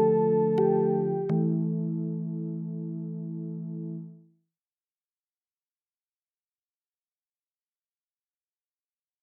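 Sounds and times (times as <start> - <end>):
synthesizer without effects: 0.0 - 4.2.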